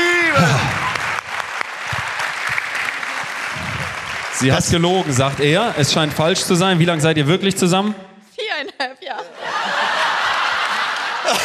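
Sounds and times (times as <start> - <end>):
audience applause: 0.0 - 7.7, 9.5 - 11.4
speech: 4.4 - 10.1, 11.3 - 11.4
laughter: 8.4 - 11.4.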